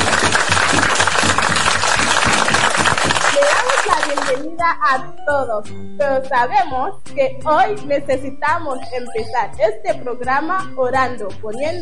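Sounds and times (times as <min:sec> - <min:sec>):
crowd applause: 0:00.0 - 0:04.4
speech: 0:04.3 - 0:11.7.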